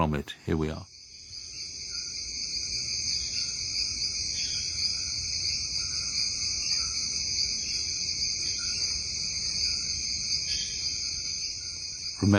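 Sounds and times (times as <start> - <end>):
speech: 0.0 - 0.9
frogs in a rainforest under the canopy: 0.0 - 12.3
insects in a rainforest under the canopy: 0.0 - 12.3.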